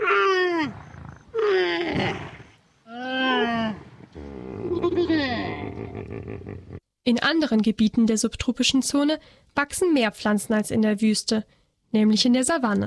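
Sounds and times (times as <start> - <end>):
camels calling at a waterhole: 0.0 - 6.1
speech: 7.1 - 12.8.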